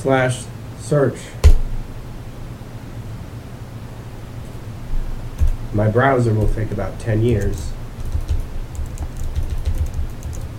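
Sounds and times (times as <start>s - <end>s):
speech: 0.0s - 1.4s, 5.7s - 7.8s
typing a search query on a computer keyboard: 7.3s - 10.5s.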